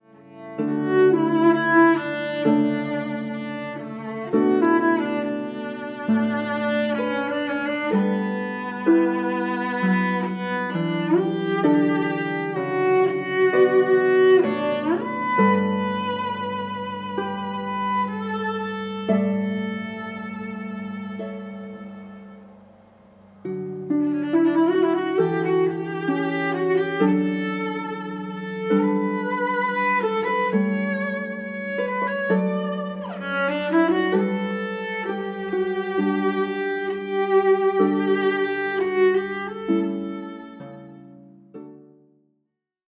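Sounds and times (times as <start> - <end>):
oboe: 0.0 - 22.6, 23.5 - 41.1.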